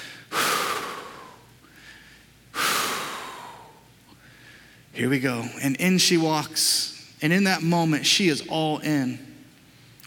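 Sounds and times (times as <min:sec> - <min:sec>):
person taking deep breaths: 0:00.0 - 0:05.0
speech: 0:05.0 - 0:09.3.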